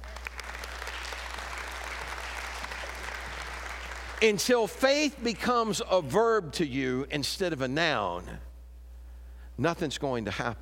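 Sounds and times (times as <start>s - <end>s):
audience hand clapping: 0.0s - 5.8s
speech: 4.2s - 8.5s, 9.6s - 10.5s.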